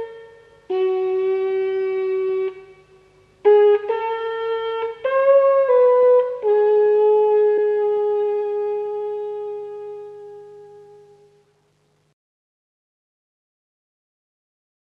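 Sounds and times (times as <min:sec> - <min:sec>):
Swedish herding folk tune: 0:00.0 - 0:11.4.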